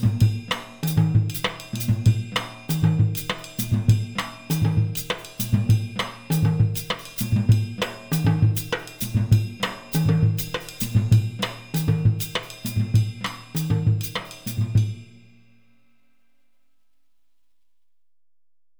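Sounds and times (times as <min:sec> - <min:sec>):
West African Adowa rhythm played on drumset: 0:00.0 - 0:14.9.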